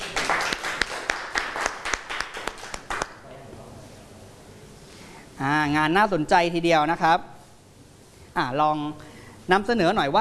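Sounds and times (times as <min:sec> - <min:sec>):
audience applause: 0:00.0 - 0:03.2
speech: 0:05.6 - 0:07.3, 0:08.4 - 0:10.2.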